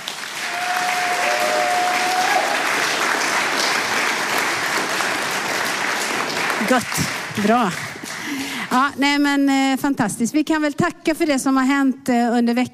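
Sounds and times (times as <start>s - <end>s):
crowd applause: 0.0s - 8.8s
speech: 6.7s - 12.7s.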